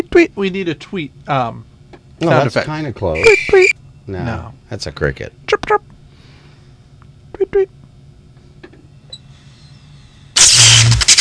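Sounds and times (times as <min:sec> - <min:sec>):
speech: 0:00.2 - 0:05.9, 0:07.5 - 0:07.8
engine starting up: 0:10.4 - 0:11.1.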